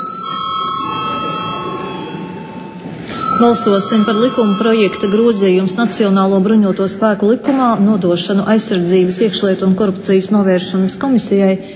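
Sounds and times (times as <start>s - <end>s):
parliament chamber electric bell ringing: 0.0s - 6.5s
low murmur: 0.0s - 8.0s
speech: 3.4s - 11.7s.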